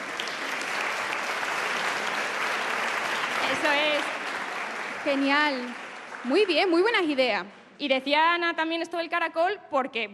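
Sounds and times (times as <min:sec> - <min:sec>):
audience applause: 0:00.0 - 0:07.0
speech: 0:05.0 - 0:10.1.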